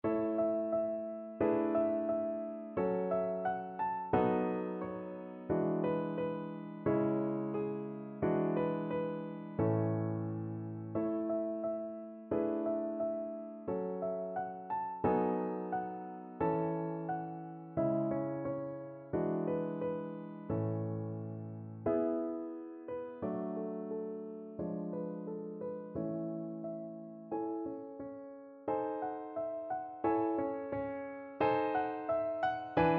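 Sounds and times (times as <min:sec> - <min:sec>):
piano duet: 0:00.0 - 0:32.9.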